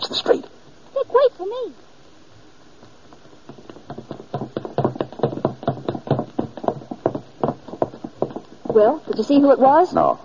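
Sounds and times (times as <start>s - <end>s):
speech: 1.4s - 1.9s, 8.8s - 10.2s
hurried footsteps running down a staircase: 2.8s - 9.2s.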